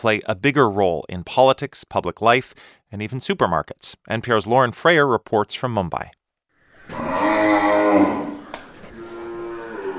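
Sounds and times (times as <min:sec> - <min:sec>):
speech: 0:00.0 - 0:06.2, 0:07.9 - 0:08.3
cow lowing at a dairy farm north of Mumbai: 0:06.9 - 0:09.9.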